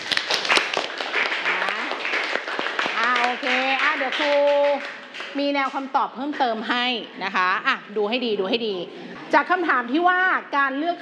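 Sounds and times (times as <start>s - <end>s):
class clapping hands: 0.0s - 6.5s
speech: 4.1s - 10.9s.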